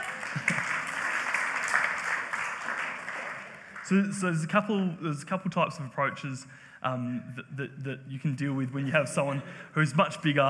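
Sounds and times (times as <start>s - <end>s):
audience applause: 0.0s - 4.1s
speech: 3.9s - 10.4s.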